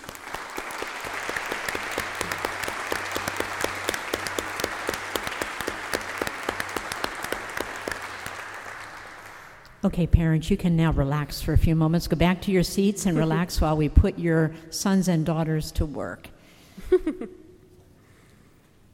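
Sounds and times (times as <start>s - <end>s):
audience applause: 0.0s - 9.7s
speech: 9.8s - 16.3s, 16.9s - 17.4s.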